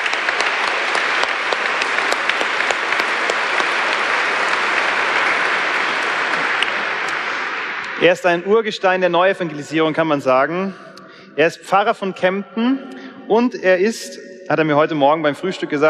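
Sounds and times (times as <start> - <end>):
audience applause: 0.0 - 8.2
speech: 8.0 - 15.8.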